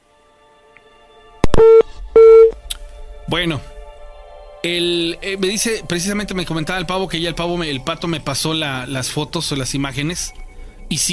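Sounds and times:
telephone line tones on call: 1.4s - 2.6s
speech: 3.3s - 3.8s, 4.6s - 11.1s.

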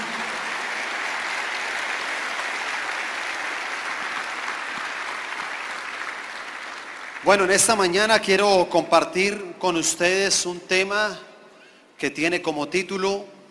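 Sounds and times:
audience applause: 0.0s - 7.7s
speech: 7.2s - 11.3s, 12.0s - 13.3s.

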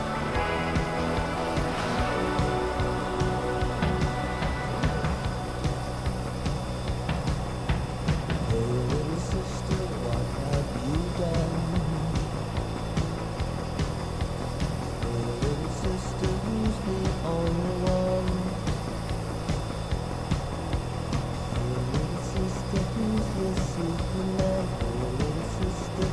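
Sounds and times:
melodic music with sustained tones: 0.0s - 8.6s
F-14 Tomcat fighter jet cockpit roar: 0.0s - 26.1s.

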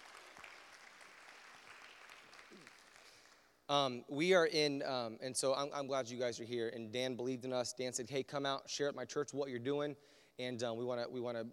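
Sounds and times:
church service audience applause welcoming visiting guests: 0.0s - 3.4s
speech: 3.7s - 11.5s.

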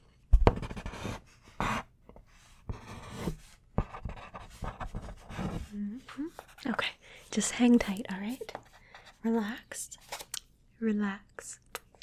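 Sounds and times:
scratchy strokes of writing down notes: 0.4s - 1.9s, 2.7s - 5.7s
speech: 5.9s - 8.5s, 9.2s - 10.0s, 10.8s - 11.6s.

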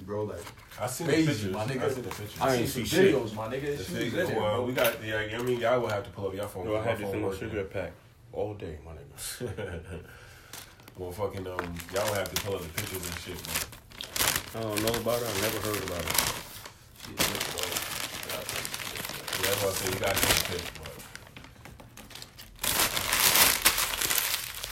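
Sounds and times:
people talking: 0.0s - 10.0s, 11.0s - 13.6s, 14.6s - 16.3s, 17.0s - 21.0s
paper bag crumpling: 10.5s - 24.7s.

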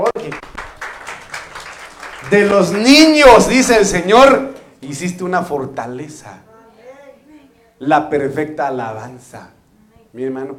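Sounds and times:
audience applause: 0.0s - 4.1s
speech: 2.3s - 6.5s, 7.8s - 10.5s.

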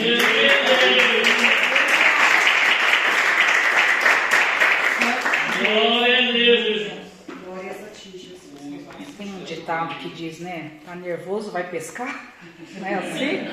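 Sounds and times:
audience applause: 0.0s - 6.1s
speech: 9.8s - 13.5s.

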